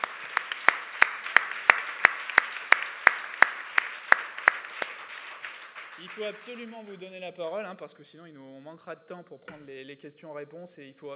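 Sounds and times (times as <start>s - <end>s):
scattered applause: 0.0s - 7.1s
steady clapping: 0.0s - 7.1s
speech: 6.0s - 11.1s.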